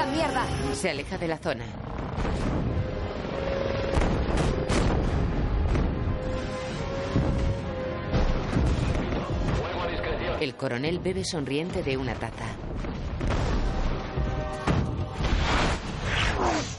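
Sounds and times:
speech: 0:00.2 - 0:02.7, 0:10.4 - 0:12.7
missile explosions in a battle scene from the film Avatar: 0:01.9 - 0:10.0, 0:11.7 - 0:16.1.

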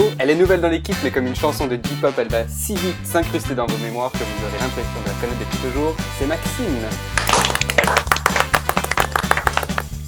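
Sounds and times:
speech: 0:00.2 - 0:08.1
steady music bed: 0:03.8 - 0:10.0
one person clapping: 0:07.1 - 0:10.0.

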